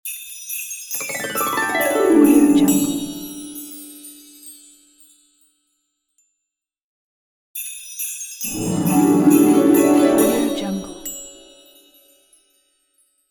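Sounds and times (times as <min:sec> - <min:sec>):
christmas music: 0:01.0 - 0:04.3, 0:08.5 - 0:11.9.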